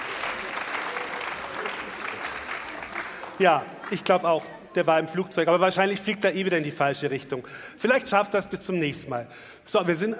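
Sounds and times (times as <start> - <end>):
audience applause: 0.0 - 4.7
speech: 3.4 - 10.1.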